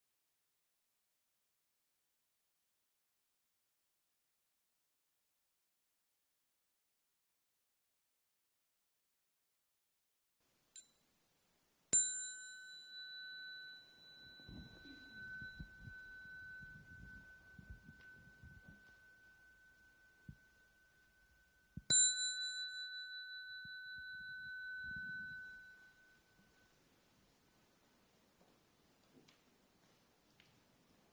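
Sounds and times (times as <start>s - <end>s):
meditation bell (khánh) struck at a Buddhist temple: 12.0s - 26.9s
soft rustling: 14.2s - 21.1s, 24.1s - 31.1s.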